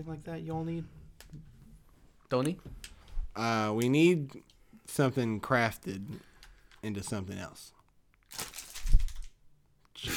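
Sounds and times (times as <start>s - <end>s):
speech: 0.0s - 1.5s, 2.3s - 8.5s
paper being thrown and crumpled: 8.2s - 9.3s.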